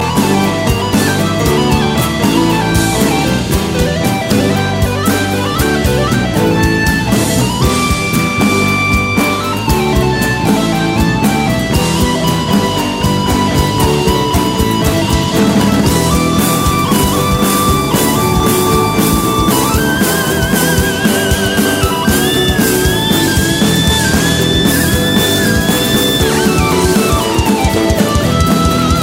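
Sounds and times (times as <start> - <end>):
electric guitar: 0.0 - 29.0.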